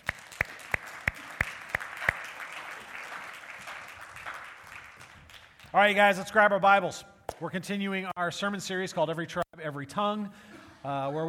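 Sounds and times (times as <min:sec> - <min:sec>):
audience applause: 0:00.0 - 0:05.7
speech: 0:05.7 - 0:11.2.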